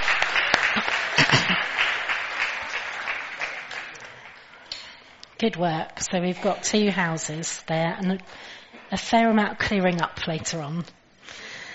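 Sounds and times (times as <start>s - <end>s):
round of applause: 0.0s - 4.7s
speech: 5.4s - 11.4s.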